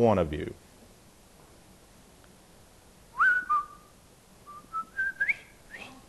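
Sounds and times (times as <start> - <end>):
person whistling a march melody: 3.2 - 3.9, 4.5 - 6.0.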